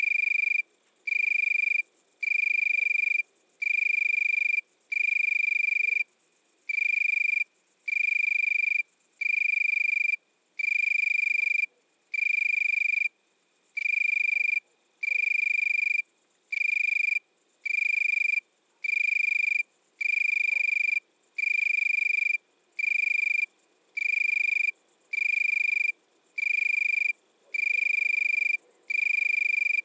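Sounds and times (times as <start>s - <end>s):
Italian tree cricket trilling: 0.0s - 29.8s
faint high-pitched insect pulses: 0.0s - 29.8s.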